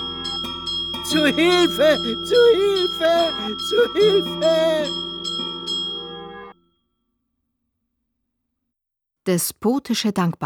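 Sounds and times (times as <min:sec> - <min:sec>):
bell being rung urgently: 0:00.0 - 0:06.5
speech: 0:01.1 - 0:05.1, 0:09.3 - 0:10.4.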